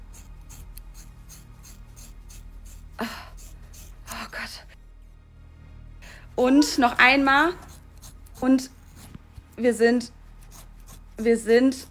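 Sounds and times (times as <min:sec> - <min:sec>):
scissors cutting thick hair: 0:00.0 - 0:04.5, 0:07.4 - 0:11.9
low hum: 0:00.0 - 0:11.9
speech: 0:06.4 - 0:07.6, 0:08.4 - 0:08.8, 0:09.6 - 0:10.2, 0:11.2 - 0:11.9.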